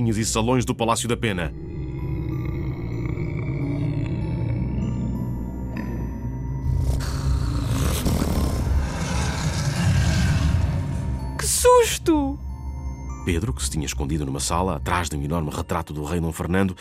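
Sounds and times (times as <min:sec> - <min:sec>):
speech: 0:00.0 - 0:01.6, 0:12.0 - 0:12.4, 0:13.3 - 0:16.7
deep snore-like roar: 0:01.5 - 0:11.4.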